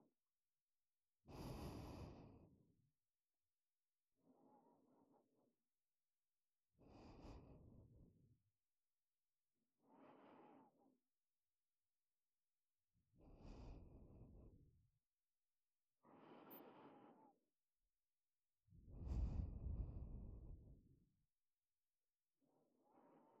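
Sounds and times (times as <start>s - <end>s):
breathing in ASMR on the right side: 1.3s - 2.6s, 6.8s - 8.1s, 9.8s - 11.0s, 13.2s - 14.6s, 16.0s - 17.4s, 18.9s - 20.6s, 22.6s - 23.3s.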